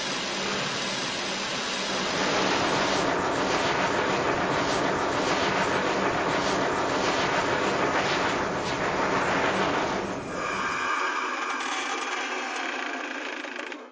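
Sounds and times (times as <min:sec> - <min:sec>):
train: 0:00.0 - 0:13.8.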